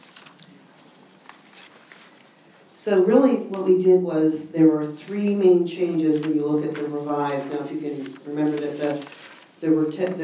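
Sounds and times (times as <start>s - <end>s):
sheets of paper being shuffled: 1.2s - 2.2s, 6.2s - 10.2s
speech: 2.8s - 10.2s.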